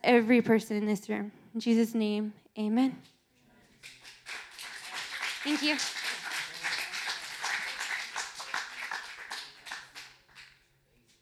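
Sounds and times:
speech: 0.0s - 3.2s, 5.4s - 6.0s
audience applause: 3.8s - 10.5s.

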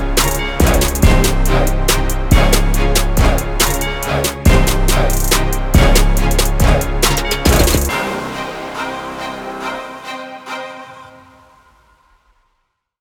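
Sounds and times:
dirty hip hop trap beat: 0.0s - 8.7s.

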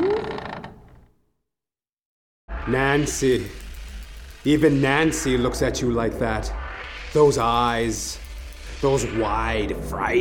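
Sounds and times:
door creaking as it swings open: 0.0s - 1.2s
speech: 2.6s - 3.6s, 4.4s - 8.2s, 8.8s - 10.1s.

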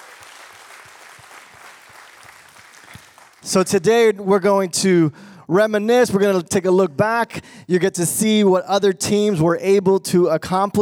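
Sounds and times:
crowd clapping: 0.0s - 3.6s
speech: 3.4s - 10.8s.

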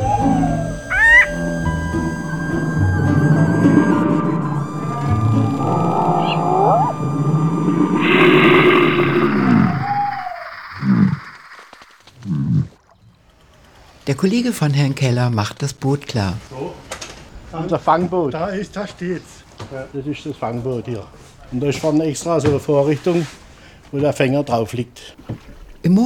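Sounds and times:
American bullfrogs calling with deep resonant croaks: 0.0s - 2.7s
faint higher chirps: 0.0s - 12.0s
speech: 14.2s - 16.8s, 17.5s - 26.0s.

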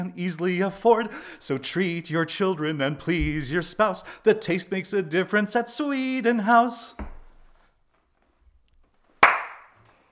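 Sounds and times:
speech: 0.0s - 7.1s
sharp hand clap: 9.2s - 9.8s.

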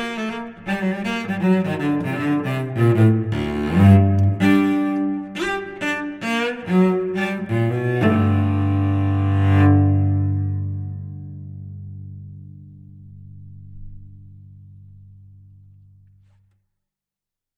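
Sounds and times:
gypsy cello music: 0.0s - 12.7s.

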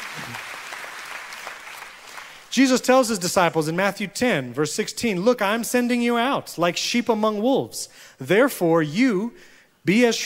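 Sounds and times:
crowd applauding: 0.0s - 2.5s
speech: 2.6s - 10.2s.

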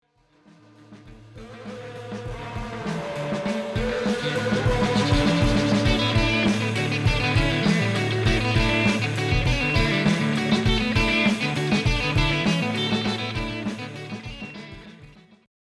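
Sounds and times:
rock music: 1.0s - 15.3s.

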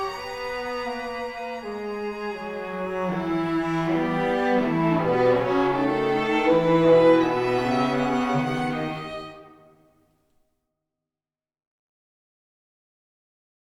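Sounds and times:
string quartet: 0.0s - 9.8s.

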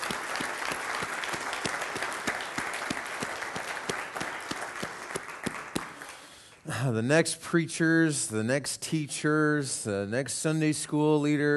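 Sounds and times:
big round of applause: 0.0s - 6.6s
speech: 6.8s - 11.5s.

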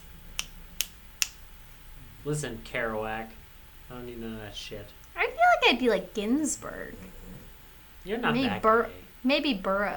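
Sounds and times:
finger snapping as beat-poet applause: 0.3s - 1.4s
speech: 2.2s - 5.0s, 5.6s - 7.2s, 8.0s - 9.9s.

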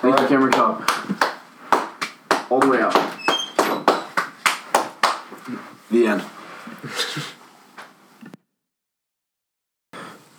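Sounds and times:
speech: 0.0s - 1.2s, 5.9s - 6.3s
hands clapping: 0.0s - 5.5s
laughter: 6.8s - 7.4s.

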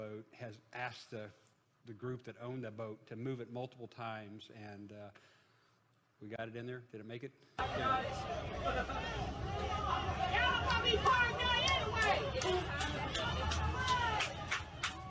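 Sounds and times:
speech: 0.0s - 5.4s, 6.2s - 14.0s
people chattering on a boat: 7.6s - 14.8s.

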